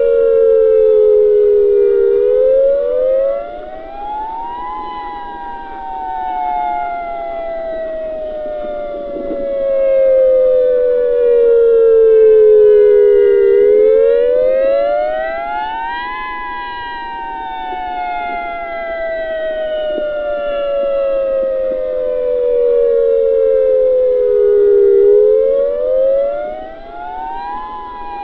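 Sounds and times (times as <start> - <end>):
dual tone attack siren: 0.0 - 28.2.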